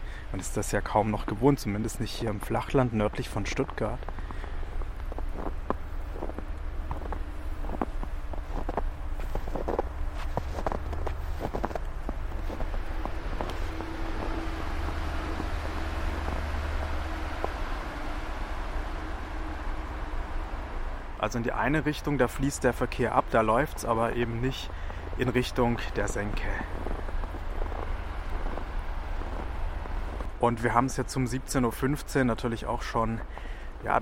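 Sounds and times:
speech: 0.3 - 4.2, 21.3 - 26.8, 30.4 - 33.9
footsteps crunching on snow: 4.0 - 21.0, 22.0 - 30.4.

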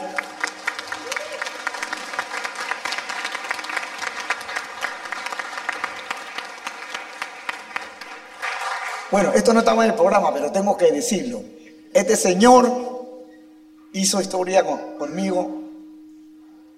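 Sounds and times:
audience applause: 0.0 - 9.4
speech: 9.1 - 12.8, 14.0 - 15.6.

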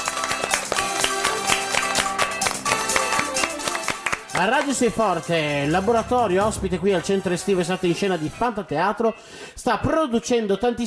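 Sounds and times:
group applauding: 0.0 - 5.0
speech: 4.4 - 10.8.

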